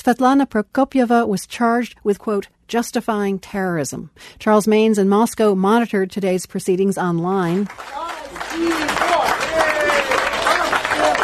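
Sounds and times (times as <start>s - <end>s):
speech: 0.0s - 9.1s
supporters cheering in court: 7.6s - 11.2s.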